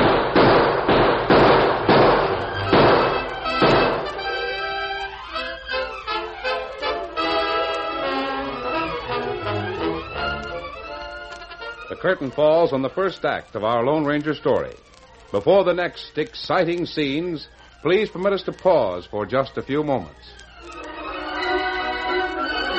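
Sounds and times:
gunshots fired at a door: 0.0 - 4.2
sweeping orchestral music: 1.4 - 13.4, 20.6 - 22.7
speech: 12.0 - 20.8.

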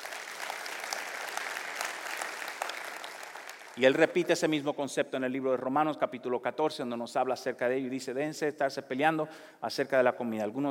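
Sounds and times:
applause: 0.0 - 4.4
speech: 3.8 - 10.7.

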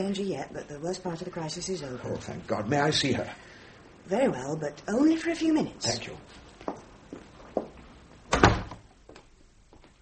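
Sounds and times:
speech: 0.0 - 3.5, 4.1 - 6.8
footsteps entering room: 6.3 - 8.0.

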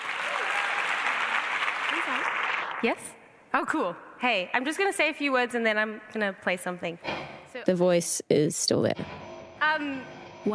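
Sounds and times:
audience applause: 0.0 - 2.9
speech: 2.0 - 9.2, 9.8 - 10.5.

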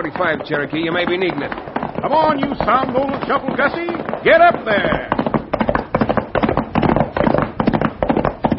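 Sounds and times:
speech: 0.0 - 5.1
rapid barrage of gunshots: 0.0 - 8.5.

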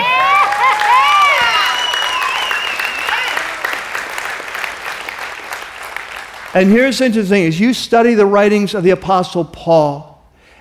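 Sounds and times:
high cheering whoops: 0.0 - 4.0
audience clapping hard: 0.0 - 7.2
speech: 6.6 - 10.1.

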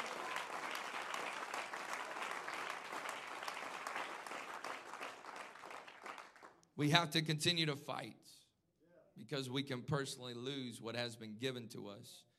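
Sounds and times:
audience clapping hands: 0.0 - 6.6
speech: 6.8 - 8.4, 9.2 - 12.3.

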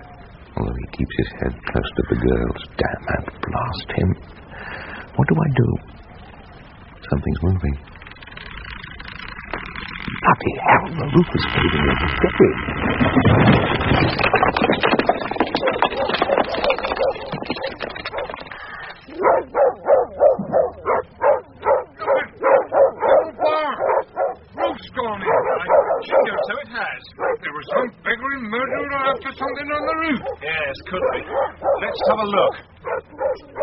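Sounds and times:
speech: 0.9 - 4.4, 5.2 - 5.9, 7.1 - 7.9, 10.3 - 14.3, 31.9 - 32.7
dogs barking and whimpering: 12.9 - 33.6.

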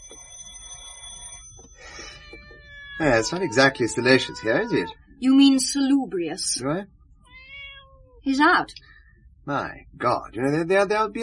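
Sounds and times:
doorbell ringing with high metallic tone: 0.0 - 2.5
speech: 3.0 - 7.0, 8.2 - 8.9, 9.5 - 11.2.

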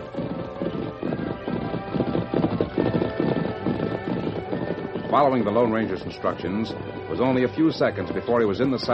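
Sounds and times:
approaching horse hoofbeats: 0.0 - 8.9
speech: 5.2 - 8.9.

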